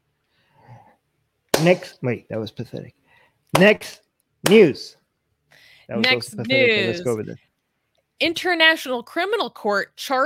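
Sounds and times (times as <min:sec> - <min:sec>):
hand clapping: 0:01.5 - 0:01.9, 0:03.5 - 0:04.8
speech: 0:01.6 - 0:07.4, 0:08.2 - 0:10.2.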